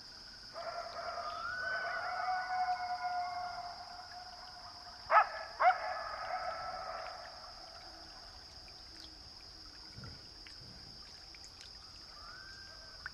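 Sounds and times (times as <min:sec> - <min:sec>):
coyote howling: 0:00.6 - 0:08.2.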